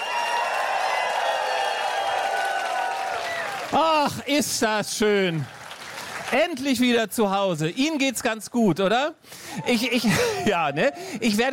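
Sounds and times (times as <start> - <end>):
crowd cheering: 0.0 - 6.7, 9.5 - 11.5
audience applause: 0.0 - 6.9
speech: 3.7 - 5.6, 6.3 - 11.5.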